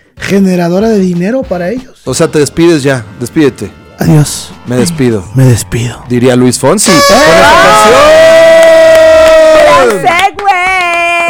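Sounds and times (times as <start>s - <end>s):
speech: 0.3s - 9.0s, 9.8s - 10.6s
loud sustained held shout: 6.8s - 10.1s
faint scattered clapping: 8.6s - 11.2s.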